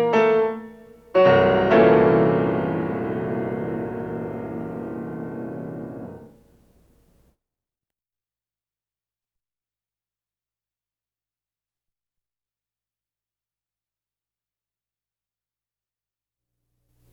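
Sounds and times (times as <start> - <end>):
piano piece: 0.0 - 6.6.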